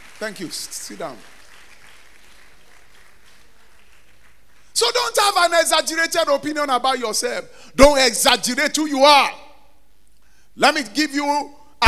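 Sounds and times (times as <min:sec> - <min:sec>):
audience clapping: 0:00.0 - 0:05.4
speech: 0:00.2 - 0:01.4, 0:04.8 - 0:09.4, 0:10.6 - 0:11.8.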